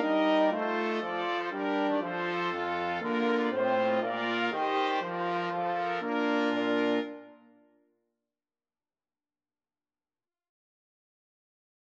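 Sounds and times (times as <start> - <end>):
brass quartet playing: 0.0 - 7.6.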